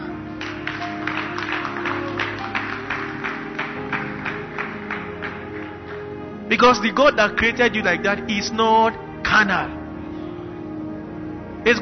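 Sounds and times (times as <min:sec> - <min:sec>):
sustained low musical tone: 0:00.0 - 0:11.7
audience clapping: 0:00.1 - 0:06.4
speech: 0:06.5 - 0:09.8.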